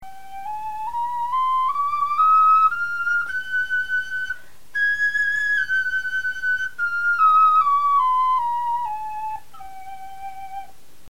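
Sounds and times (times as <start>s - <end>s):
bone flutes playing a scale: 0.0s - 10.8s.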